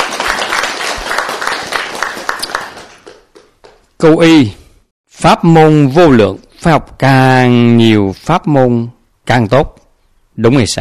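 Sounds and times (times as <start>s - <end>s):
audience applause at a Buddhist gathering: 0.0s - 3.9s
speech: 4.0s - 4.6s, 5.2s - 9.8s, 10.4s - 10.7s.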